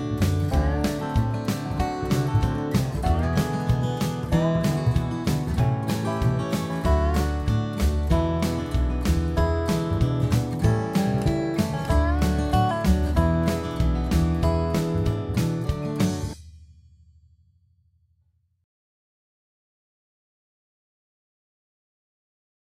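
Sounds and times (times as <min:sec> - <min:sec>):
drums: 0:00.0 - 0:17.2.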